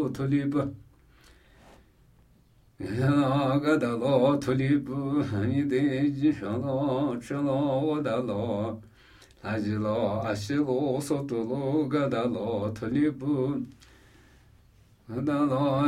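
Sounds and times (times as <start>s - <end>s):
Namuyi Tibetan ritual chanting: 0.0s - 0.8s, 2.8s - 13.8s, 15.0s - 15.8s.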